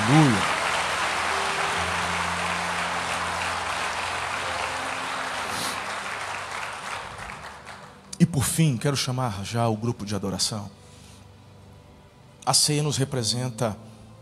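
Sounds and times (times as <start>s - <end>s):
audience applause: 0.0s - 8.0s
speech: 0.1s - 0.5s, 8.4s - 10.8s, 12.5s - 13.9s.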